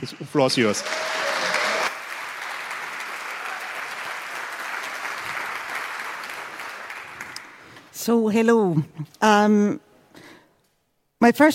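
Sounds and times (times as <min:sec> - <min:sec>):
speech: 0:00.0 - 0:01.2, 0:08.0 - 0:09.9, 0:11.2 - 0:11.5
audience applause: 0:00.0 - 0:07.8.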